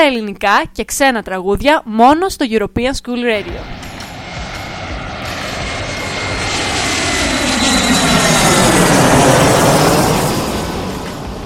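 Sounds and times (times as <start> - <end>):
speech: 0.0 - 3.9
airplane engine roar: 3.3 - 11.4.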